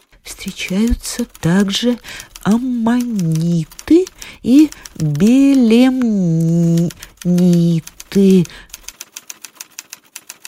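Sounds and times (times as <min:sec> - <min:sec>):
typewriter typing: 0:00.0 - 0:10.4
speech: 0:00.4 - 0:03.8, 0:04.4 - 0:08.7.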